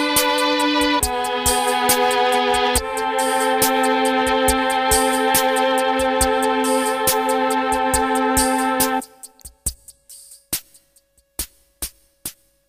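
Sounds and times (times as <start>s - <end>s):
violins: 0.0s - 9.4s.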